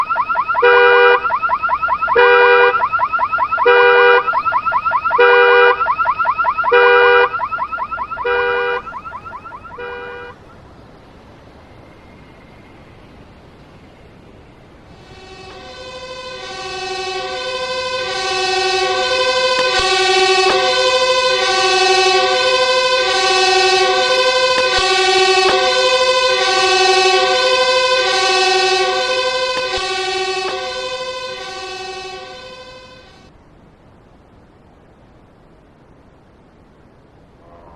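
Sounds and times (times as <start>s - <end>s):
alarms: 0.0s - 10.4s, 15.0s - 33.3s
sirens: 0.0s - 33.3s.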